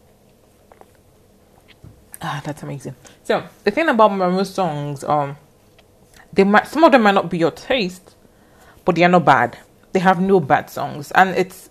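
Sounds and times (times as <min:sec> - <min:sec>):
person sipping tea: 0:00.6 - 0:01.9
speech: 0:02.2 - 0:05.4, 0:06.3 - 0:08.2, 0:08.8 - 0:11.6.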